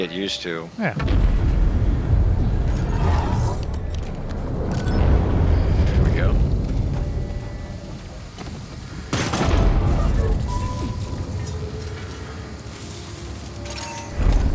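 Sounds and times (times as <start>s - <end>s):
speech: 0.0s - 1.4s
grenade explosions in a video game: 1.0s - 12.0s.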